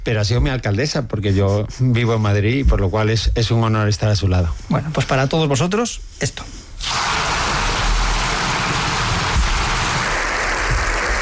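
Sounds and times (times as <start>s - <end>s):
speech: 0.1s - 7.0s
applause from a large assembly in parliament: 7.0s - 11.2s.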